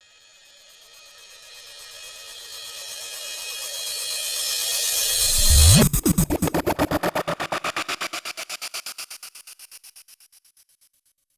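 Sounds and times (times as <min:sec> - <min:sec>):
reversed space sound: 0:05.0 - 0:08.2.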